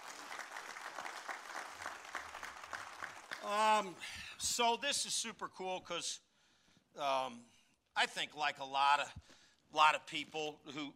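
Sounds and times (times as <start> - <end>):
audience clapping: 0.0 - 4.0
speech: 3.4 - 6.3, 7.0 - 10.9.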